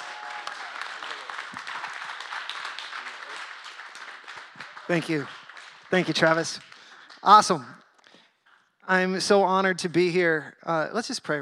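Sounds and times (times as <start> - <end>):
church congregation applause welcoming a guest preacher: 0.0 - 7.7
speech: 4.9 - 7.8, 8.9 - 11.4.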